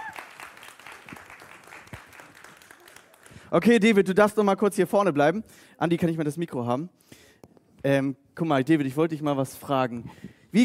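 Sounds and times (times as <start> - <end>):
audience applause: 0.0 - 3.5
speech: 3.5 - 7.2, 7.8 - 10.6.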